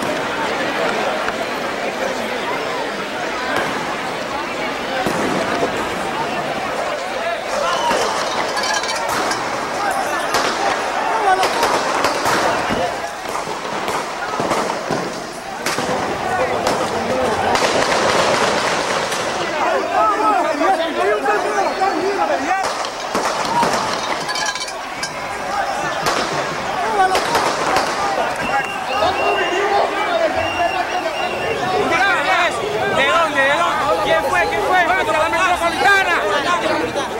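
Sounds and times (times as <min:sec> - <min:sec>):
large agitated crowd roaring in front of a palace: 0:00.0 - 0:37.1
many voices shouting and talking: 0:00.0 - 0:37.1
sniper gunshots: 0:05.0 - 0:06.9, 0:07.5 - 0:19.8, 0:22.6 - 0:28.6.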